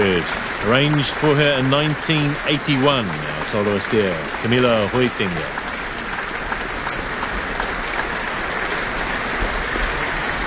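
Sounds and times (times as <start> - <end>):
concert hall audience applause at the Auckland Town Hall: 0.0 - 10.4
speech: 0.2 - 5.6.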